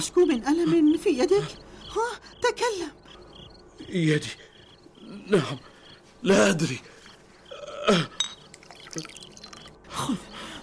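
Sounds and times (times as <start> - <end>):
speech: 0.0 - 3.0, 3.8 - 4.5, 5.2 - 6.9, 7.9 - 8.2, 9.0 - 9.2, 10.0 - 10.3
water gurgling and dripping: 8.3 - 9.9
water poured for drinking, splashing and trickling: 8.4 - 9.8.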